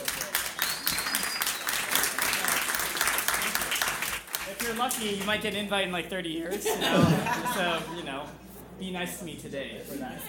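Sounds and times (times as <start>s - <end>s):
audience applause: 0.0s - 5.3s
faint high whistle: 0.6s - 2.0s
speech: 4.7s - 10.2s
laughter: 6.4s - 8.3s.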